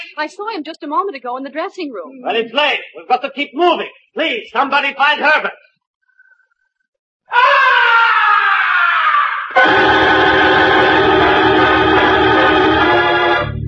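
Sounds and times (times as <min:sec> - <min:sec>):
speech: 0:00.2 - 0:05.7, 0:07.3 - 0:08.1
blood-curdling scream from high above an opera house stage: 0:07.3 - 0:13.5.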